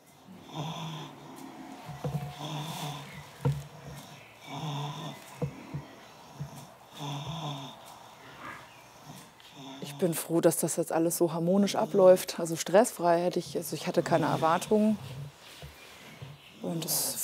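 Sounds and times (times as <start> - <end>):
snoring of someone asleep: 0.3 - 5.7, 6.3 - 7.8
speech: 10.0 - 15.2, 16.7 - 17.2.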